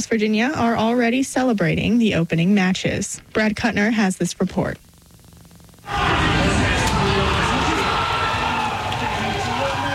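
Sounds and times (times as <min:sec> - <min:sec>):
speech: 0:00.0 - 0:04.9
crowd cheering Mexico's first goal of the 2026 World Cup: 0:05.9 - 0:09.9.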